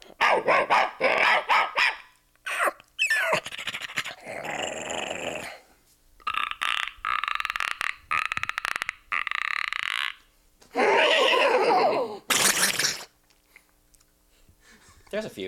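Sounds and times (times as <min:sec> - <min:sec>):
voice actor imitating dog barks, growls and panting: 0:00.0 - 0:01.5, 0:02.4 - 0:05.6, 0:06.2 - 0:13.1.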